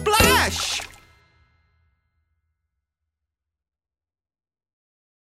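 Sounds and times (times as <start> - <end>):
splash: 0.2 - 1.1.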